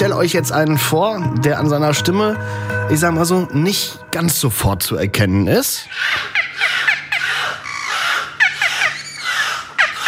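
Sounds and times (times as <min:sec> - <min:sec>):
speech: 0:00.2 - 0:06.7
beluga whale squeals, chirps and rising whistles: 0:05.8 - 0:10.0.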